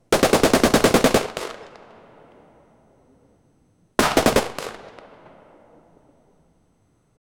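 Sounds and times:
9 mm gunfire shootout in Brazil: 0.1s - 2.1s, 4.0s - 5.8s.

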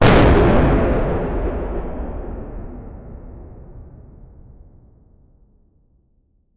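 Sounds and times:
meteor hitting the earth: 0.0s - 5.1s.

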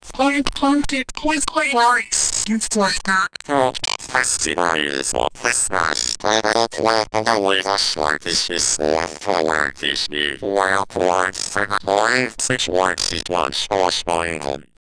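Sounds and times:
announcer speaking: 0.2s - 14.7s
fart: 3.4s - 13.3s.

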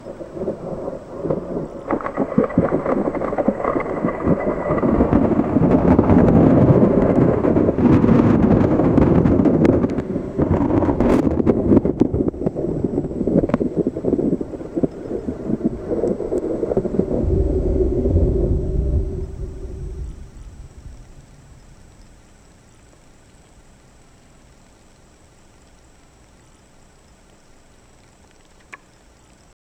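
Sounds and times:
eruption: 0.0s - 29.6s
giant: 16.8s - 21.3s.

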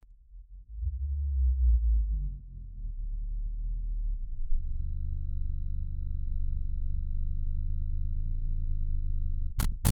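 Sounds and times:
slow motion sound effect: 0.0s - 9.9s.

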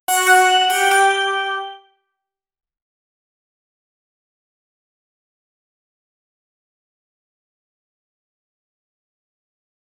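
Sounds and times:
short witch theme sound effect: 0.1s - 1.8s.

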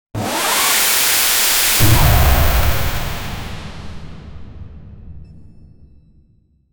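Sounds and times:
sci-fi blaster shot with energy: 0.4s - 4.9s.

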